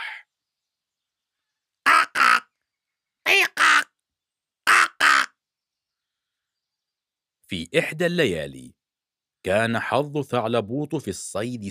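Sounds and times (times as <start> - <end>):
crow cawing: 1.8 - 2.5, 3.3 - 3.9, 4.6 - 5.4
speech: 7.5 - 8.8, 9.4 - 11.6.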